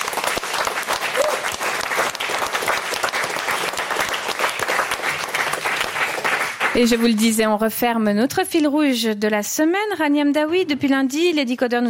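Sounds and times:
studio audience applause: 0.0 - 7.4
speech: 6.8 - 11.8.

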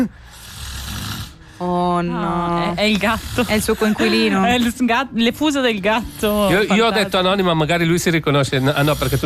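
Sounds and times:
snoring at night: 0.2 - 1.4, 2.4 - 4.8, 6.0 - 6.8, 8.6 - 9.2
speech: 1.6 - 9.2.

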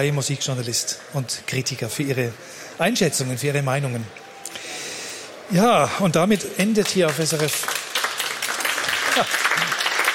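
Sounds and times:
speech: 0.0 - 4.3, 5.5 - 7.7, 9.2 - 9.4
concert audience applause after a summer orchestra concert: 6.6 - 10.1.

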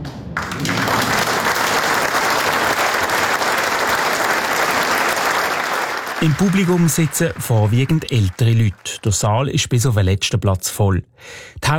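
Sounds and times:
audience applause: 0.4 - 9.5
speech: 6.2 - 11.7.

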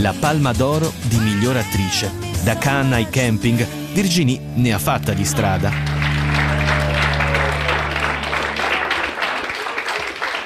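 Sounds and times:
speech: 0.0 - 5.9
audience applause: 5.3 - 10.4.

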